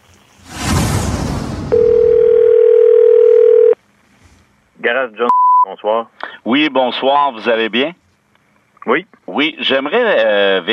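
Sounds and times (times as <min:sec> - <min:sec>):
rough hiss on a call line: 0:00.0 - 0:01.7
telephone ringing on a call line: 0:01.7 - 0:03.8
speech: 0:05.0 - 0:08.0, 0:08.8 - 0:10.7.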